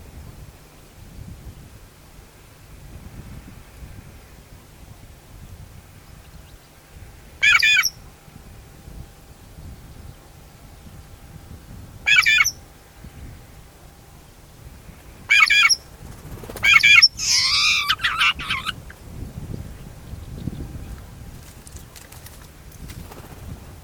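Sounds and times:
shrike squawking: 7.4 - 7.9, 12.1 - 12.6, 15.3 - 15.8, 16.6 - 18.9.

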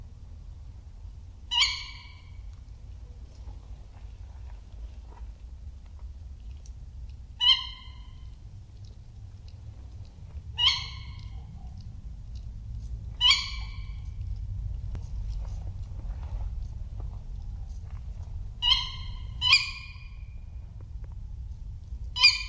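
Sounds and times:
steady low rumble: 0.0 - 22.4
tawny owl kewick calls: 1.5 - 2.4, 7.4 - 8.3, 10.6 - 11.8, 13.2 - 14.1, 18.6 - 20.4, 22.1 - 22.4.

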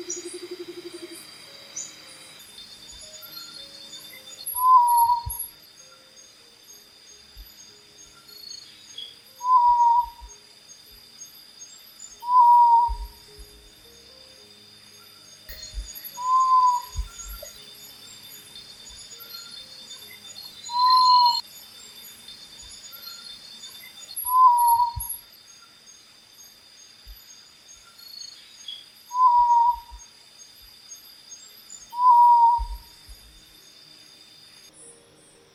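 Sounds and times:
calm night forest ambience: 0.0 - 35.5
mystical owl hooting in a calm night forest: 4.5 - 5.4, 9.4 - 10.4, 12.2 - 13.2, 16.2 - 17.5, 20.7 - 21.4, 24.2 - 25.1, 29.1 - 30.0, 31.9 - 32.9.

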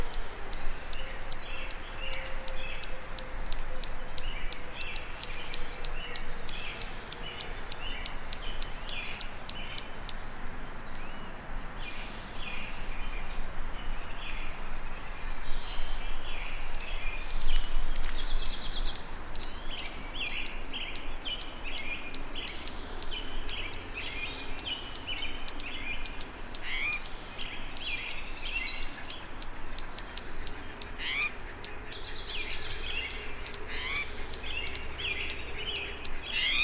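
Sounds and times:
Anna's Hummingbird: 0.0 - 36.6.

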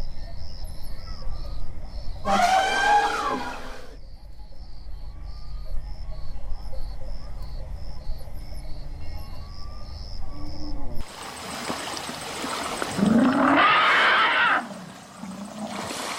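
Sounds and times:
Myna harsh chattering calls: 2.2 - 4.0, 13.0 - 14.8.

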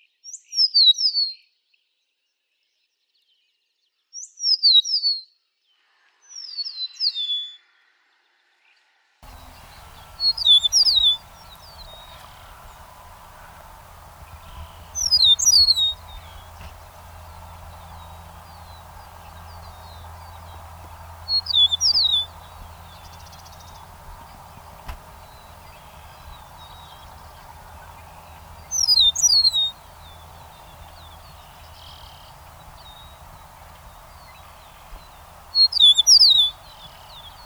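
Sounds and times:
meadowlark call: 9.2 - 37.4.

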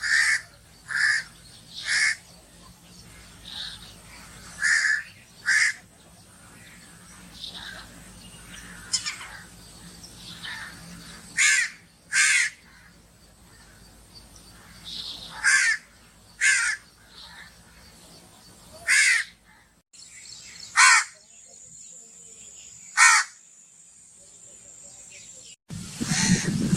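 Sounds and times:
crow cawing: 0.0 - 2.2, 3.6 - 5.8, 7.6 - 9.5, 10.4 - 13.8, 14.6 - 17.5, 18.8 - 19.8, 20.8 - 21.2, 23.0 - 23.4
calm bird ambience: 0.0 - 26.7.

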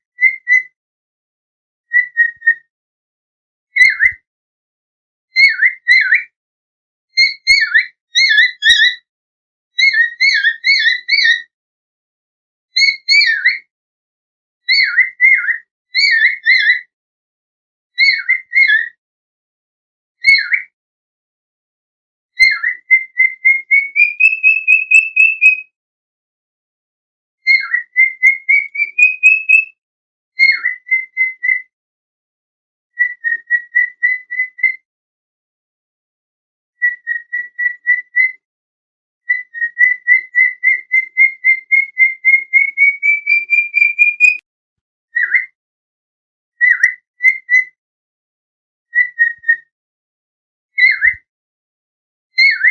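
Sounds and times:
bird whistled song: 0.1 - 0.8, 1.9 - 2.7, 3.7 - 4.3, 5.3 - 6.4, 7.1 - 9.1, 9.8 - 11.5, 12.7 - 13.7, 14.6 - 16.9, 18.0 - 19.0, 20.2 - 20.8, 22.4 - 25.7, 27.4 - 29.8, 30.4 - 31.7, 32.9 - 34.8, 36.8 - 38.4, 39.2 - 44.4, 45.1 - 45.6, 46.6 - 47.8, 48.9 - 49.7, 50.7 - 51.3, 52.3 - 52.6.

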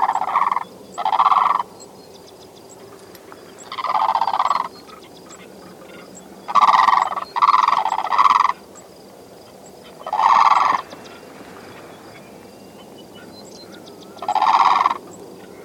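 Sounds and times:
blue crane calling: 0.0 - 15.6.

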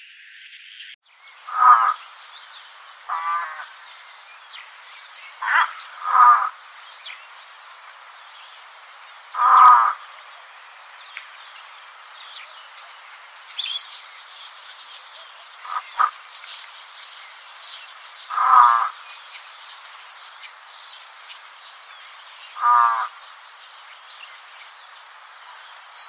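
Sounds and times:
spoonbill rasping calls: 1.5 - 2.1, 3.1 - 3.8, 5.4 - 6.6, 9.4 - 10.0, 18.3 - 19.0, 22.6 - 23.1.

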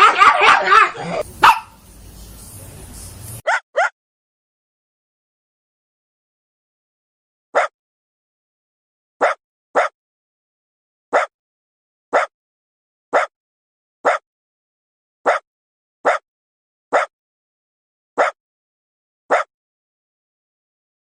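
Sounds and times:
happy dog barking: 0.0 - 1.9, 3.4 - 4.0, 7.6 - 7.8, 9.2 - 10.0, 11.1 - 11.3, 12.1 - 12.3, 13.1 - 13.3, 14.0 - 14.2, 16.0 - 16.2, 16.9 - 17.1, 19.3 - 19.5.

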